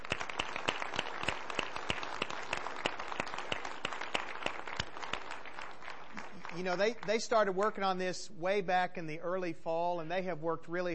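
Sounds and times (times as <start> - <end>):
audience applause: 0.0 - 7.2
speech: 6.6 - 10.9.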